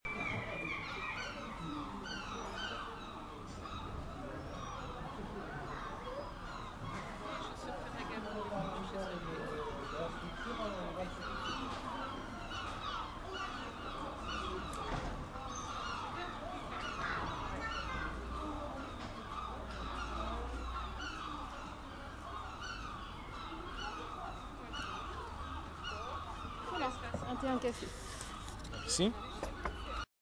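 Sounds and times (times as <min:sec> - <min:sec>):
seagulls at a cafe: 0:00.1 - 0:30.1.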